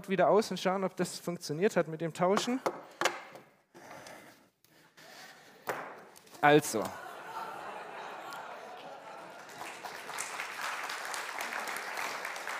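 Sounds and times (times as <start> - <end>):
speech: 0.0 - 3.0, 6.4 - 7.0
laughter: 6.4 - 10.6
applause: 8.0 - 12.5.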